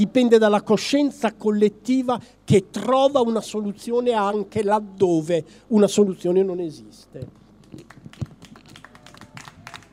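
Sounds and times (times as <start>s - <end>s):
speech: 0.0s - 8.0s
audience applauding: 7.7s - 9.9s.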